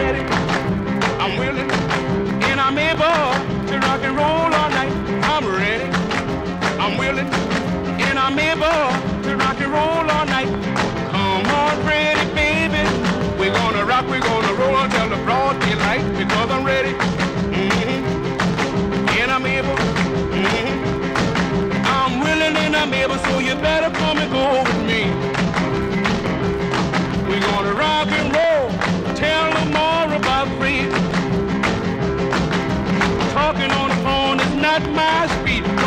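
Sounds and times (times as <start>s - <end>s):
excavated old vinyl record playing on turntable: 0.0s - 35.8s.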